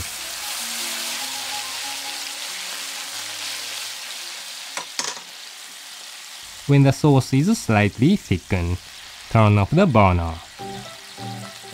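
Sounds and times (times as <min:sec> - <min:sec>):
white wine sizzling in a hot pan: 0:00.0 - 0:11.7
pan clinking: 0:04.8 - 0:05.3
speech: 0:06.7 - 0:10.4.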